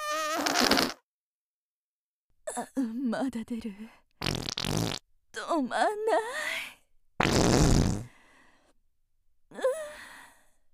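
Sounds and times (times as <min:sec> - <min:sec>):
fart: 0:00.0 - 0:01.0, 0:04.2 - 0:05.0, 0:07.2 - 0:08.1
speech: 0:02.6 - 0:04.0, 0:04.7 - 0:04.9, 0:05.6 - 0:06.5.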